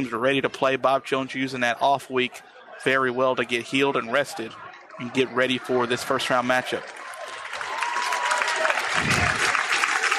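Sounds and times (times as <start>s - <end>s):
speech: 0.0s - 7.1s
fans clapping in stadium: 6.0s - 10.1s.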